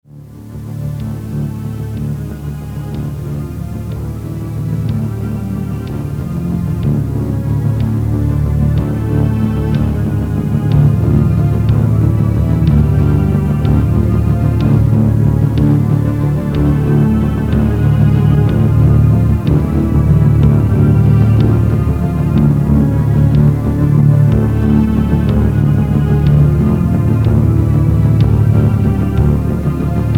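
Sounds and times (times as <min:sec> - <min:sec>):
waltz music: 0:00.1 - 0:30.1.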